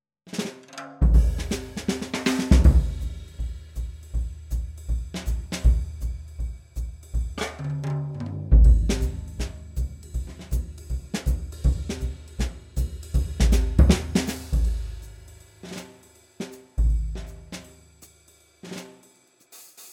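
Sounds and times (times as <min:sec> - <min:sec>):
bebop solo: 0:01.0 - 0:07.6, 0:08.5 - 0:16.0.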